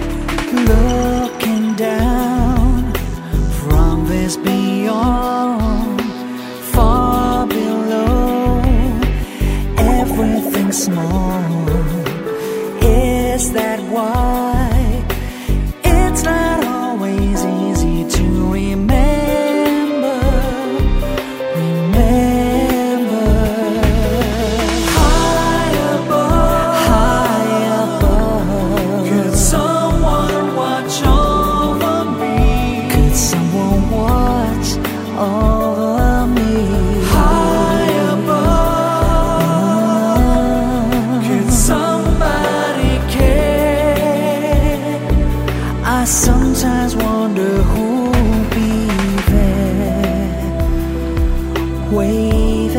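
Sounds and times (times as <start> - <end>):
person singing: 0.2 - 52.7.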